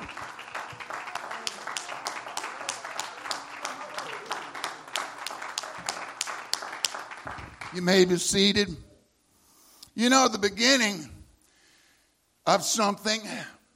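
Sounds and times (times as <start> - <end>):
audience clapping hands: 0.0 - 8.2
speech: 7.7 - 8.9, 10.0 - 11.1, 12.5 - 13.6.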